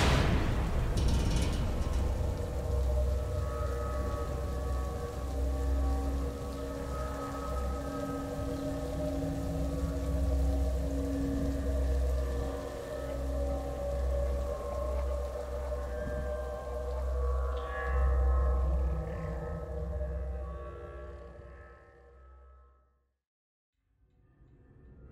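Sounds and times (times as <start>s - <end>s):
rain falling steadily: 0.0s - 20.4s
faint sustained droning tones: 0.1s - 22.8s.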